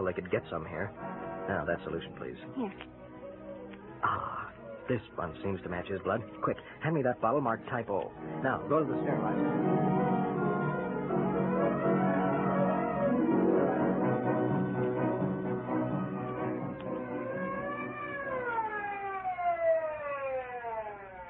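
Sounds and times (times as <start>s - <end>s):
speech: 0.1s - 3.0s, 4.0s - 10.0s
ambulance siren wailing: 8.2s - 21.2s.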